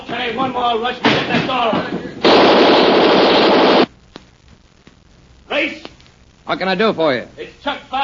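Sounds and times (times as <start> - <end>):
speech: 0.3 - 2.0, 6.5 - 8.0
machine gun firing: 2.2 - 3.9.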